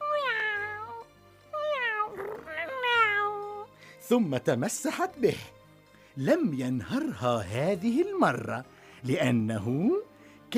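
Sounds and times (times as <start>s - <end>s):
female cat meowing as a sound effect in a children's story: 0.0s - 3.7s
speech: 4.1s - 5.6s, 6.2s - 10.5s.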